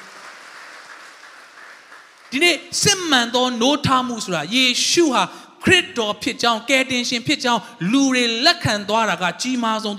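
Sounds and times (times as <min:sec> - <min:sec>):
church congregation clapping hands in praise during a sermon: 0:00.0 - 0:03.3
speech: 0:02.3 - 0:09.9.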